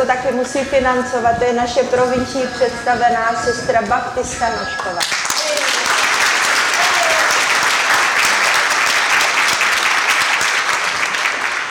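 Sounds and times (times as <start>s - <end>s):
speech: 0.0s - 5.2s
audience applause: 5.0s - 11.6s.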